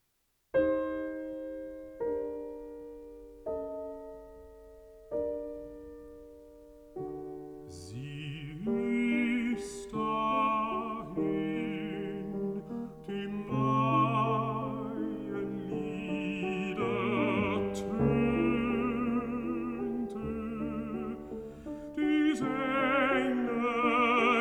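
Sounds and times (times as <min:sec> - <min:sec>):
piano: 0:00.0 - 0:24.4
person singing: 0:07.7 - 0:24.4.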